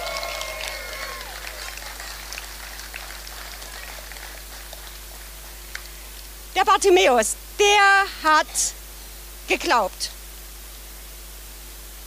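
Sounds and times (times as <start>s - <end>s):
audience applause: 0.0s - 6.0s
speech: 6.6s - 8.8s, 9.5s - 10.2s.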